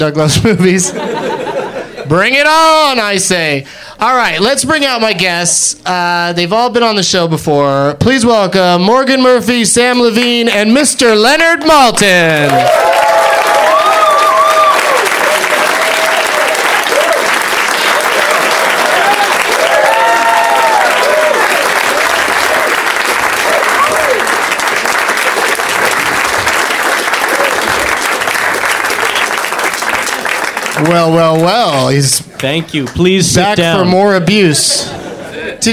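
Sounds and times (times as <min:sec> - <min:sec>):
speech: 0:00.0 - 0:01.2, 0:02.1 - 0:13.0, 0:30.8 - 0:35.0
laughter: 0:00.4 - 0:02.2, 0:34.7 - 0:35.7
crowd applauding: 0:12.3 - 0:33.8
scattered whoops and cheers: 0:12.5 - 0:22.7, 0:23.4 - 0:24.3.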